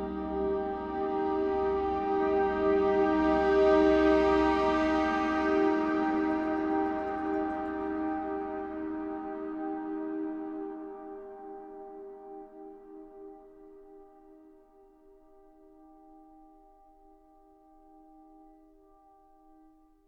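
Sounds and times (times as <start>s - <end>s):
wind orchestra: 0.0s - 14.1s.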